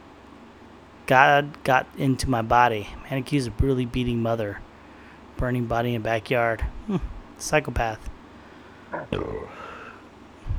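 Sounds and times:
speech: 1.1s - 4.7s, 5.4s - 8.1s, 8.9s - 9.7s
loud low burp into the microphone: 8.9s - 10.0s.

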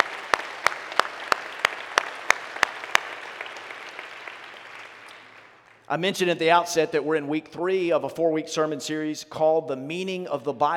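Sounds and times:
church congregation applauding the Belhaven football team: 0.0s - 6.6s
speech: 5.9s - 10.7s.

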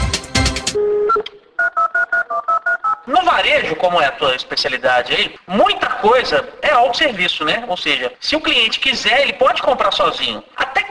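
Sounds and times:
telephone dial tone: 0.8s - 3.0s
speech: 3.6s - 10.8s.

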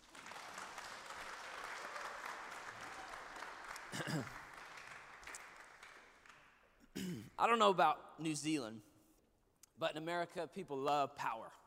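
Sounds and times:
audience clapping: 0.0s - 6.9s
speech: 4.0s - 4.4s, 7.4s - 8.9s, 9.8s - 11.6s.

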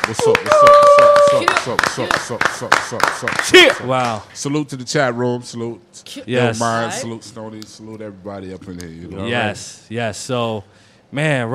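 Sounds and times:
round of applause: 0.0s - 4.0s
speech: 0.1s - 11.5s.

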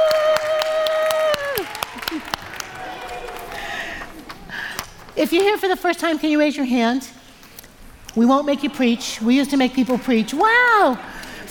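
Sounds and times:
audience clapping: 0.0s - 5.1s
speech: 5.2s - 7.2s, 8.2s - 11.4s.

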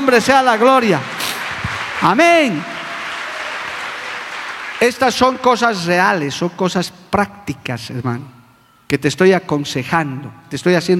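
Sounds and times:
speech: 0.0s - 1.2s, 2.0s - 2.7s, 4.8s - 10.9s
audience applause: 0.4s - 5.0s.

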